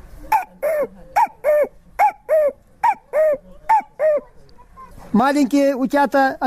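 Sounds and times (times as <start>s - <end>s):
human voice imitating a cuckoo call: 0.3s - 4.4s
speech: 5.2s - 6.4s.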